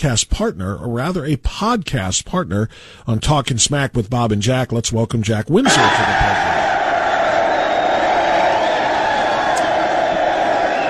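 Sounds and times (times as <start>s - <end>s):
speech: 0.0s - 6.5s
studio audience cheering and whooping: 5.6s - 10.8s.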